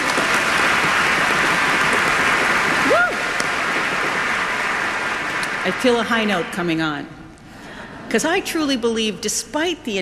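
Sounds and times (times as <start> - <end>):
audience applause: 0.0 - 6.8
speech: 5.7 - 7.2, 8.1 - 10.0.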